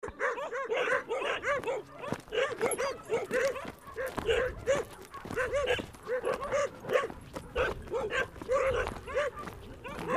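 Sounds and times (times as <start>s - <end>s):
dogs barking: 0.0s - 10.1s.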